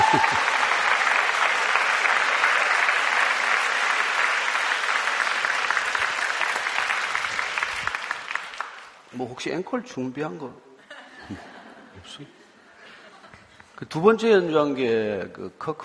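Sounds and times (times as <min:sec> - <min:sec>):
laughter: 0:00.0 - 0:00.6, 0:10.8 - 0:13.6
audience applause: 0:00.0 - 0:09.0
speech: 0:00.1 - 0:00.5, 0:09.2 - 0:10.7, 0:11.3 - 0:12.4, 0:13.8 - 0:15.8.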